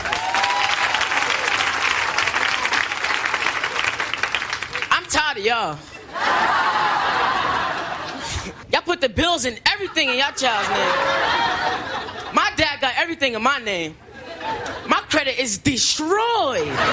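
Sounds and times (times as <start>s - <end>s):
audience applause: 0.0s - 5.1s, 6.5s - 8.1s
speech: 5.4s - 6.4s, 9.0s - 12.1s, 12.8s - 16.9s
laughter: 5.8s - 8.7s, 9.8s - 12.5s, 14.1s - 15.0s, 16.5s - 16.9s.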